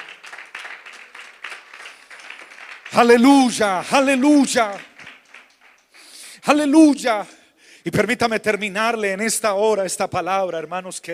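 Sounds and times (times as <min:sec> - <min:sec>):
audience applauding: 0:00.0 - 0:06.1
speech: 0:02.9 - 0:04.9, 0:06.5 - 0:11.1.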